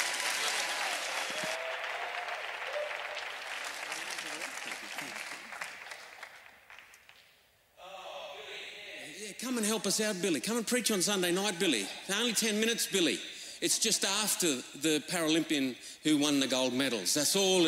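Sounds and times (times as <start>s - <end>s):
audience applause for a speaker: 0.0s - 7.1s
speech: 9.4s - 17.6s.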